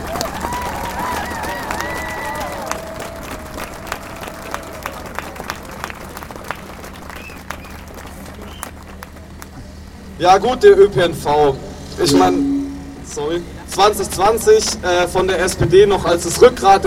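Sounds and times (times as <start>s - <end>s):
crowd applause in solidarity with strikers: 0.0s - 9.5s
speech: 10.2s - 12.5s, 13.1s - 16.8s.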